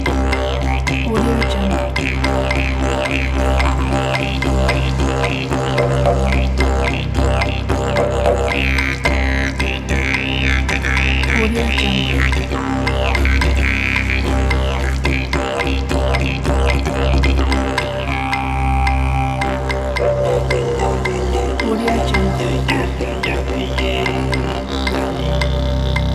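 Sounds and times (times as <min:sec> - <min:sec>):
didgeridoo: 0:00.0 - 0:26.1.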